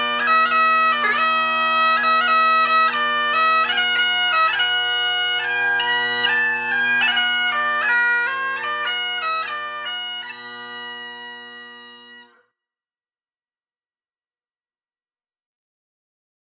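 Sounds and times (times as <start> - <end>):
bagpipes playing a march: 0.0 - 12.4.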